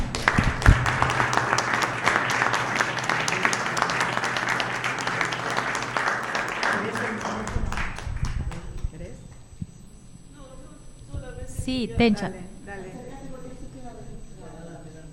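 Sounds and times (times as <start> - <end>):
audience applause: 0.0 - 8.8
speech: 11.7 - 12.4.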